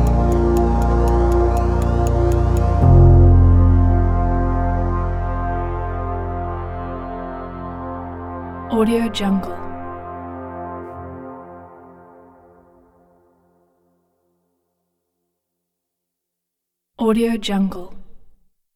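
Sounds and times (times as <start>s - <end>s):
ambient corporate technology background music: 0.0s - 13.7s.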